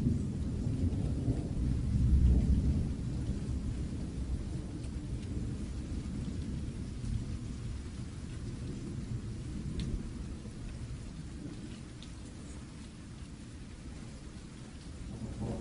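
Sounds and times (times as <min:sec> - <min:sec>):
thunder: 0:00.0 - 0:11.8, 0:15.0 - 0:15.5
rain: 0:00.0 - 0:15.5.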